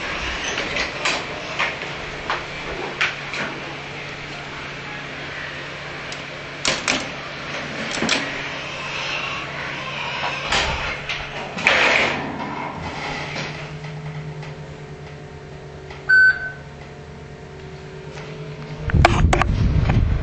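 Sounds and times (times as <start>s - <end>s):
steady hum at a train station: 0.0s - 20.2s
short clear elevator beep: 16.1s - 16.6s.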